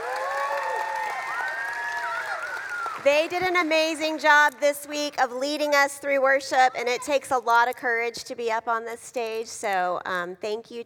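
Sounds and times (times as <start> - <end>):
audience applause: 0.0 - 4.1
speech: 3.0 - 10.8.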